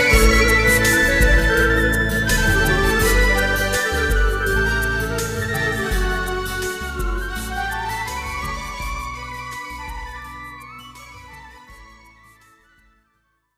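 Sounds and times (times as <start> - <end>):
slow improvised Roland G600 keyboard melody: 0.0 - 12.2.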